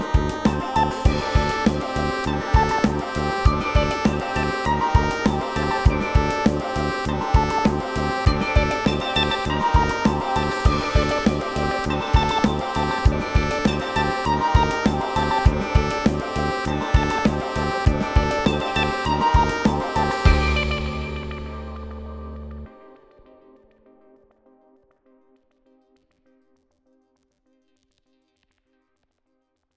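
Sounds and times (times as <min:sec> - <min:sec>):
bell: 0:00.0 - 0:22.5.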